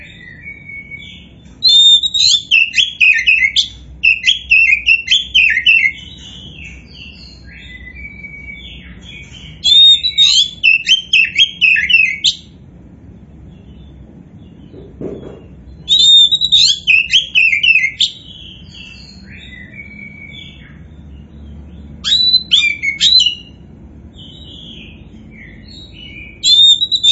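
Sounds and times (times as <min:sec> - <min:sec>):
Oriental magpie-robin song: 0:00.0 - 0:12.6, 0:15.7 - 0:27.1.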